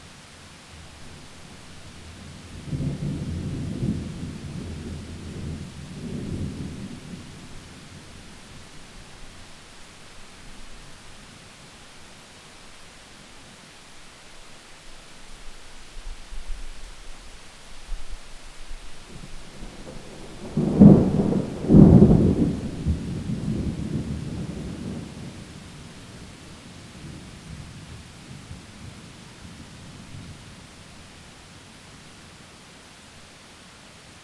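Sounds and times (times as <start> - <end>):
thunderstorm heard from inside: 0.9 - 8.7, 19.0 - 31.0.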